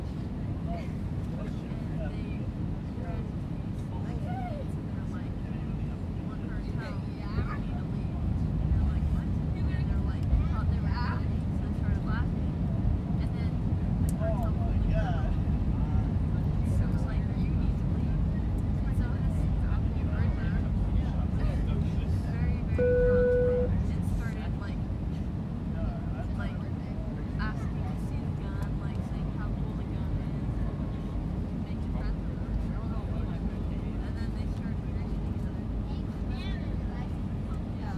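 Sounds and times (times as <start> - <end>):
plane engine roar inside the cabin in flight: 0.0 - 37.8
brief tone: 22.8 - 23.8.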